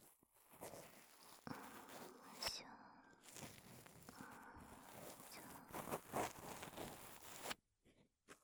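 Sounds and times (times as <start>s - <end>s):
ear cleaning in the right ear for sleep: 0.6s - 2.5s, 3.2s - 7.6s.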